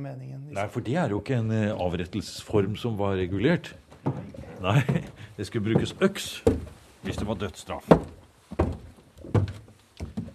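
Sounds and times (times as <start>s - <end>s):
speech: 0.0s - 8.7s
heavy footsteps on stairs: 3.6s - 10.3s.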